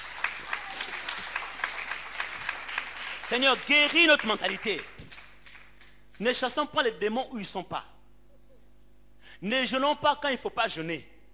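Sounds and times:
church congregation clapping in unison: 0.0s - 6.5s
speech: 3.3s - 5.0s, 6.2s - 7.9s, 9.4s - 11.1s.

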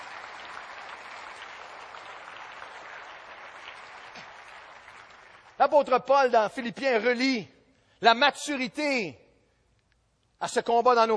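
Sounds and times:
audience applause: 0.0s - 5.6s
speech: 5.6s - 9.2s, 10.4s - 11.1s.

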